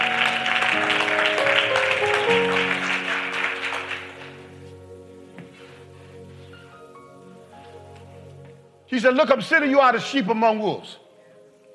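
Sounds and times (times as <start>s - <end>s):
audience clapping: 0.0s - 4.7s
speech: 9.0s - 11.0s.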